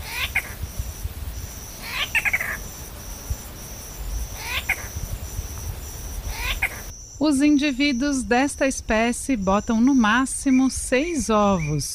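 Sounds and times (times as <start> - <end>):
bird mewing calls like a cat's meow: 0.0 - 6.9
crickets and insects droning: 0.0 - 11.9
speech: 7.2 - 11.9.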